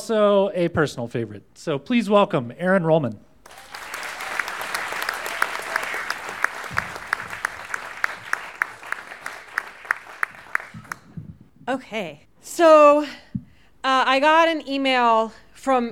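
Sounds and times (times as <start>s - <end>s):
speech: 0.1s - 3.6s, 11.7s - 13.2s, 13.8s - 15.9s
theater audience clapping: 3.4s - 11.5s.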